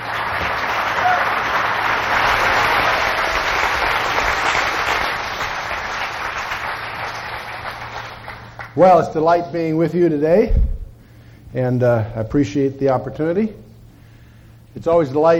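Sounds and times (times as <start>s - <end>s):
Calvary congregation applauding to welcome speaker Chuck Missler: 0.0s - 8.8s
speech: 8.8s - 10.6s, 11.5s - 13.6s, 14.8s - 15.3s.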